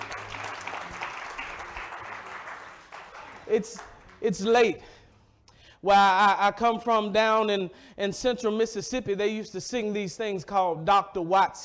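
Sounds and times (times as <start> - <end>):
audience clapping hands in praise: 0.0 - 4.6
speech: 3.5 - 5.0, 5.8 - 11.6.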